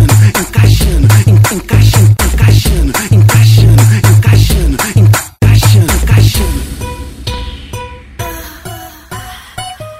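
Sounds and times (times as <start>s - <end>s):
funk bass: 0.0s - 6.6s.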